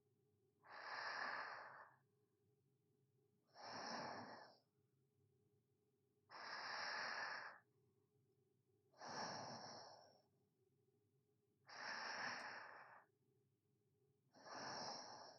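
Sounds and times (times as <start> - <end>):
sleeping breathing ASMR: 0.6 - 2.0, 3.6 - 4.6, 6.3 - 7.6, 9.0 - 10.2, 11.7 - 13.1, 14.4 - 15.3.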